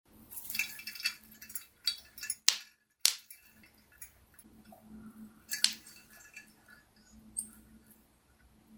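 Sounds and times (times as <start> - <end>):
glass balls colliding: 0.4 - 4.3, 5.5 - 6.8.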